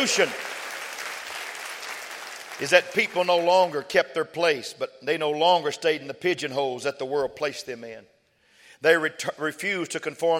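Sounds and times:
speech: 0.0s - 0.5s, 2.6s - 8.1s, 8.8s - 10.3s
audience clapping hands: 0.0s - 3.7s.

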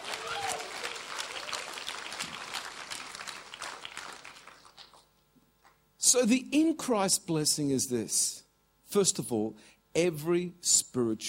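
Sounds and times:
audience clapping: 0.0s - 5.8s
speech: 6.1s - 11.2s.

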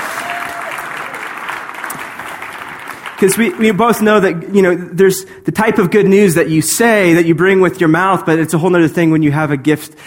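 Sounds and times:
crowd applause: 0.0s - 3.8s
speech: 3.2s - 10.0s.

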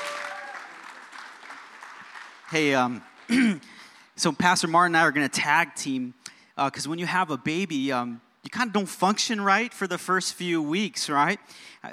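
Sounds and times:
audience clapping: 0.0s - 4.0s
speech: 2.5s - 11.9s.

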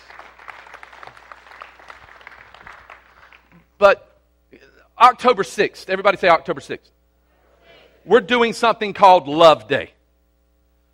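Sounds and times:
audience applauding: 0.0s - 3.6s
speech: 3.8s - 4.1s, 5.0s - 7.0s, 8.0s - 10.0s.

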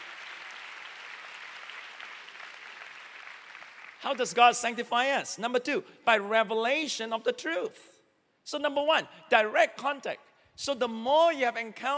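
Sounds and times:
audience clapping: 0.0s - 4.3s
speech: 4.0s - 7.9s, 8.5s - 11.9s.

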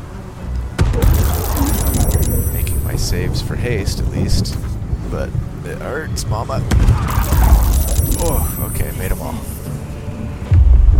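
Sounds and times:
magic missile spell damage hitting in a video game: 0.8s - 4.7s, 6.7s - 9.8s
dense rumbling crackle: 0.8s - 9.6s
speech: 3.0s - 9.6s.

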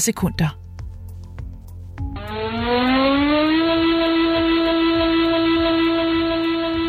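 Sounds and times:
long steady all-clear siren tone: 2.0s - 6.8s.

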